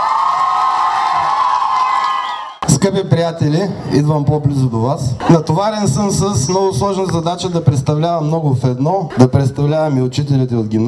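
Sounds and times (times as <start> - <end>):
crowd cheering and applause at a high school graduation ceremony: 0.0 - 2.6
speech: 2.8 - 10.8.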